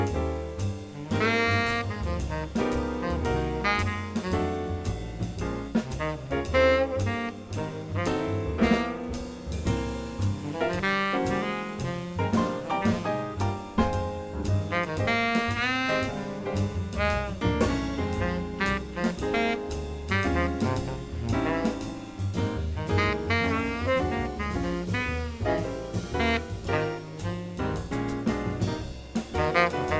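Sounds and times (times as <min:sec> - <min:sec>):
jazz music: 0:00.0 - 0:29.9.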